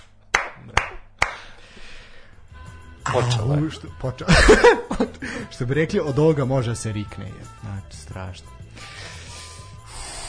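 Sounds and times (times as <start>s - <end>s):
hand claps: 0.0s - 1.6s
speech: 3.1s - 9.0s
laughter: 4.2s - 5.6s.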